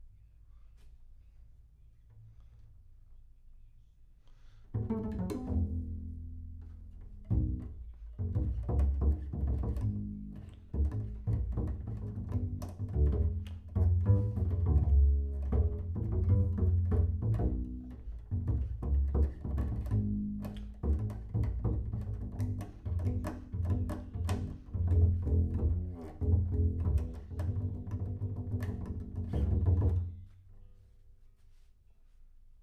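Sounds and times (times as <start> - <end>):
bass sound: 4.8 - 30.2.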